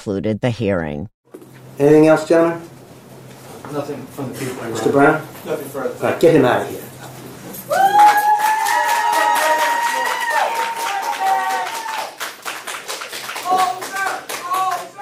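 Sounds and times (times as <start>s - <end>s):
speech: 0.0s - 1.2s, 1.8s - 2.7s, 3.7s - 6.9s
courtroom crowd cheering and jeering: 7.7s - 12.2s
clapping: 7.8s - 14.9s.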